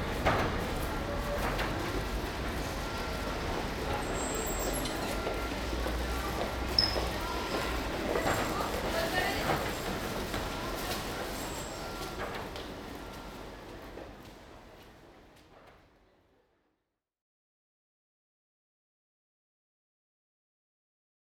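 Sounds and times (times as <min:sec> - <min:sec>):
tram in a public space seen from below: 0:00.0 - 0:16.1.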